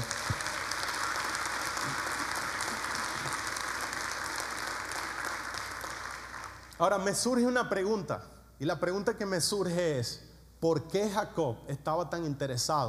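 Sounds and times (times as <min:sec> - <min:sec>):
audience applause: 0:00.0 - 0:06.8
speech: 0:06.8 - 0:12.8.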